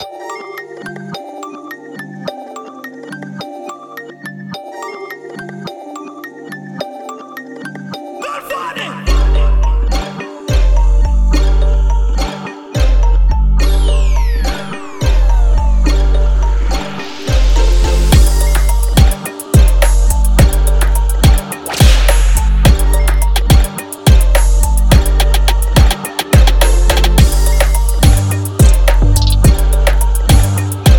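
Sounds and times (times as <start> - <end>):
instrumental jingle: 8.3 - 30.9.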